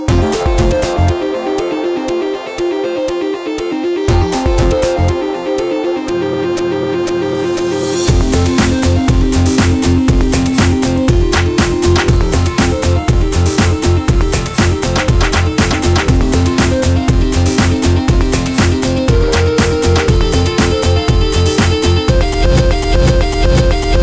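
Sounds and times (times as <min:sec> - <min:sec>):
8-bit game music: 0:00.0 - 0:24.0.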